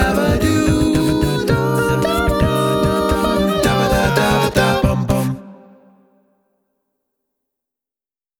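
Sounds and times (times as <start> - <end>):
gentle a cappella singing: 0.0 - 6.0.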